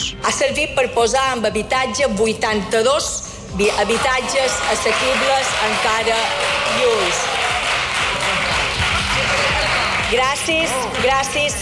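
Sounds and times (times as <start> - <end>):
speech: 0.1 - 7.4, 10.1 - 11.6
ironic applause from parliament benches: 3.7 - 11.6.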